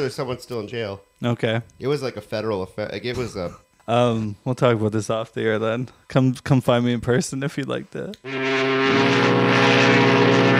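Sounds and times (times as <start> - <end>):
speech: 0.0 - 9.7
foghorn blast: 8.2 - 10.5.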